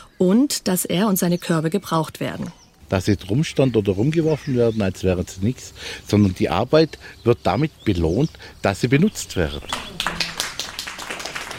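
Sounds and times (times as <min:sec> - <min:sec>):
speech: 0:00.2 - 0:10.2
tourists applauding: 0:09.3 - 0:11.5.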